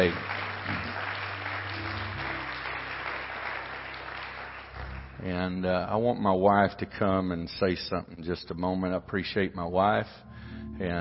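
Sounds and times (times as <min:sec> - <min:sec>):
speech: 0:00.0 - 0:00.2, 0:05.2 - 0:10.9
audience hand clapping: 0:00.0 - 0:06.0.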